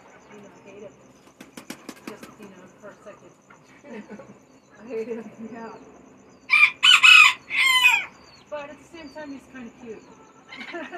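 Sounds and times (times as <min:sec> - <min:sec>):
speech: 0:03.1 - 0:06.0, 0:08.5 - 0:10.9
loud harsh chicken squawks: 0:06.5 - 0:08.1.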